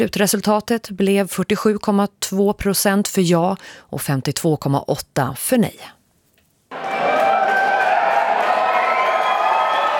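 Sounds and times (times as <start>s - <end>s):
speech: 0.0s - 6.0s
crowd cheering at election night party: 6.7s - 9.9s.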